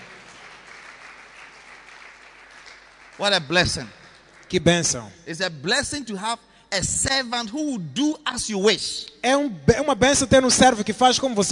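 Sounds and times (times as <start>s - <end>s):
audience applause: 0.0s - 4.5s
speech: 3.2s - 11.5s.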